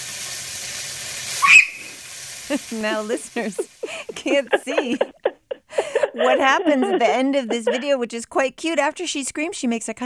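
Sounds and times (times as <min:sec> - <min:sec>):
chicken frying in hot snapping oil: 0:00.0 - 0:04.5
speech: 0:02.5 - 0:05.2, 0:06.2 - 0:10.0
laughter: 0:02.5 - 0:08.0.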